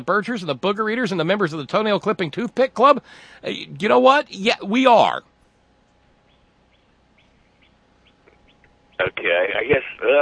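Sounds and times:
speech: 0.0 - 5.3, 9.0 - 10.1
low hiss: 0.0 - 10.1
birds chirping outside on a back porch: 5.2 - 10.1.

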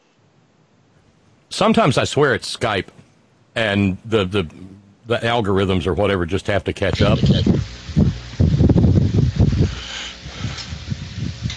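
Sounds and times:
speech: 1.6 - 3.0, 3.6 - 7.7
wind blowing into a caller's unmuted microphone: 6.9 - 11.5.

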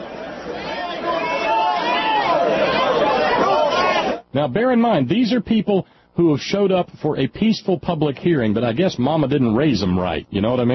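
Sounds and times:
angry coal thug mob crowd noise: 0.0 - 4.3
speech: 4.4 - 10.7.

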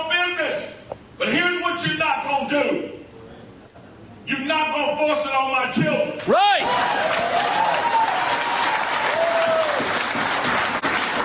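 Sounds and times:
speech: 1.2 - 3.0, 4.3 - 7.7
audience applause and clapping: 6.6 - 11.2.

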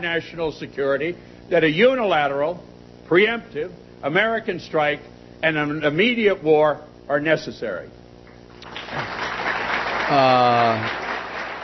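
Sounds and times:
speech: 0.0 - 8.0, 10.1 - 11.0
Johns Hopkins School of Advanced International Studies audience applause: 8.6 - 11.6.

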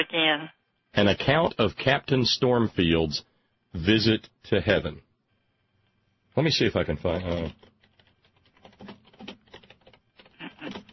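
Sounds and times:
speech: 0.0 - 5.1, 6.4 - 7.7
loud typing on a computer keyboard: 7.2 - 10.9.

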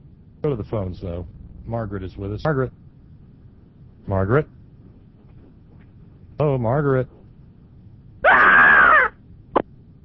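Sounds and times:
speech: 0.4 - 2.8, 4.1 - 4.6, 6.4 - 7.2
caller screeching like a monkey: 8.2 - 9.2.

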